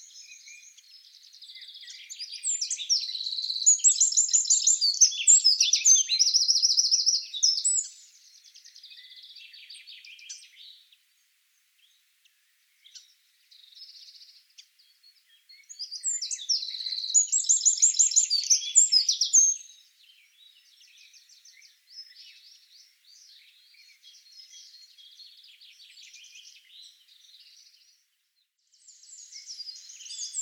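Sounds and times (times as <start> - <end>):
Eurasian wren singing: 0.0 - 10.8, 12.8 - 27.9, 28.7 - 30.4.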